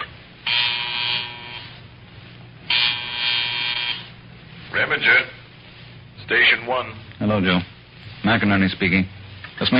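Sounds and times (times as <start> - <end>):
field telephone buzzer: 0.4 - 1.8, 2.7 - 4.2
speech: 4.8 - 5.4, 6.3 - 9.7.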